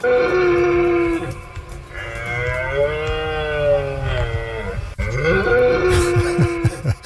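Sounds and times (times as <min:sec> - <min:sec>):
red deer stag roaring in autumn rut: 0:00.0 - 0:07.0
laughter: 0:03.7 - 0:07.0.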